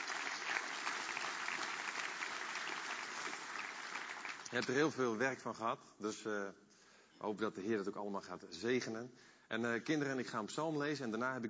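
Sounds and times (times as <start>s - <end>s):
audience applause: 0.0s - 4.7s
speech: 4.5s - 6.6s, 7.2s - 11.4s.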